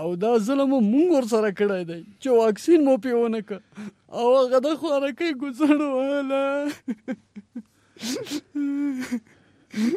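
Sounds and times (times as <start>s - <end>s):
speech: 0.0s - 7.3s, 8.0s - 9.9s
person sobbing and wailing in distress: 5.6s - 9.9s.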